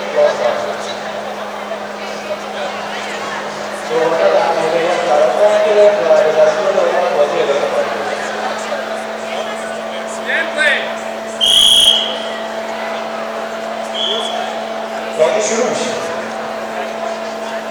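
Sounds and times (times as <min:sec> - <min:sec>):
laughter: 0:00.0 - 0:17.7
whistle: 0:11.2 - 0:15.1.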